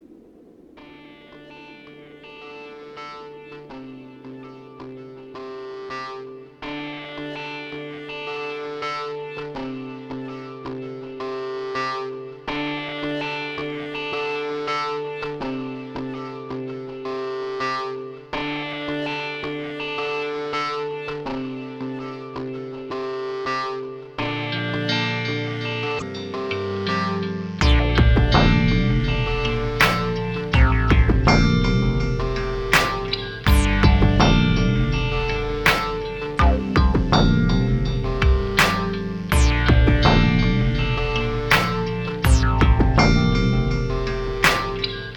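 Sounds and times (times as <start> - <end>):
instrumental music: 0.9 - 45.1.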